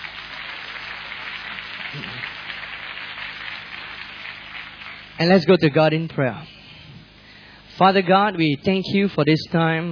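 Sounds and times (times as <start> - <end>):
audience applause: 0.0 - 5.2
speech: 1.9 - 2.4, 5.2 - 6.6, 7.8 - 9.9.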